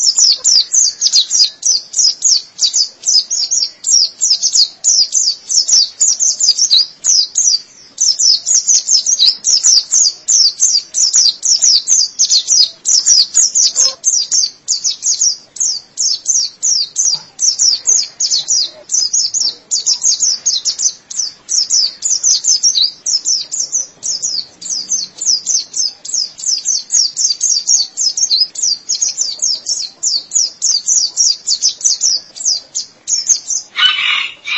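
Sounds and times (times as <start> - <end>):
white-eye twittering: 0.0 - 34.5.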